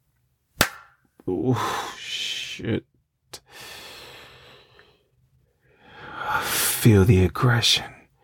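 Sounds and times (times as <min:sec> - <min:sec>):
hand slapping a cheek: 0:00.6 - 0:01.0
speech: 0:01.3 - 0:01.9, 0:02.6 - 0:02.9, 0:06.8 - 0:08.0.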